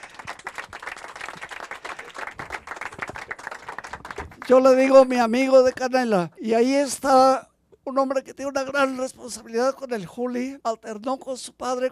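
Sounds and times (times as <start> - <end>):
audience applause: 0.0 - 4.8
speech: 4.5 - 11.9.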